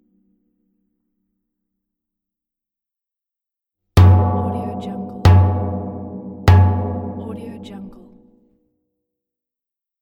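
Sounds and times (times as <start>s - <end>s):
metal gong: 4.0s - 8.1s.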